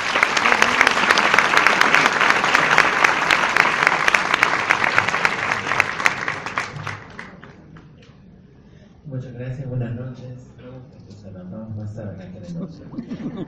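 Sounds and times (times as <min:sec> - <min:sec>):
audience applause: 0:00.0 - 0:07.6.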